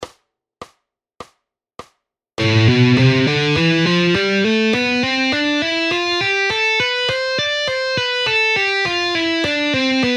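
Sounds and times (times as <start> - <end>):
guitar speed exercises: 2.4 - 10.1.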